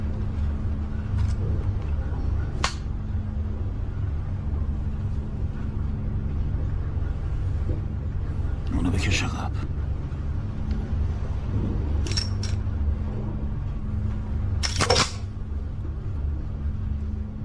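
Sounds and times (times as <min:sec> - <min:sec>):
low rumble: 0:00.0 - 0:17.4
gun being loaded, round chambered: 0:14.6 - 0:15.3.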